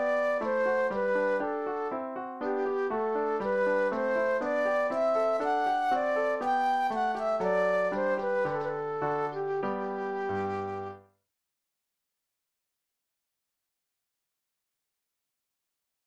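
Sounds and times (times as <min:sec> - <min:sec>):
classical solo flute playing: 0:00.0 - 0:11.0.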